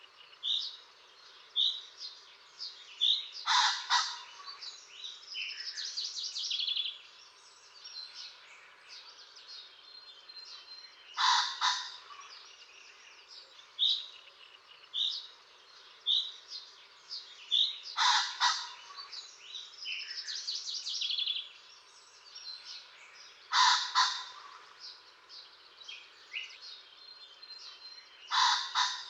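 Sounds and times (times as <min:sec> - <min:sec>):
small birds singing whistles and chirps: 0:00.0 - 0:29.0
common pheasant harsh double crow: 0:03.4 - 0:04.6, 0:11.2 - 0:12.3, 0:17.9 - 0:19.1, 0:23.5 - 0:24.8, 0:28.3 - 0:29.0.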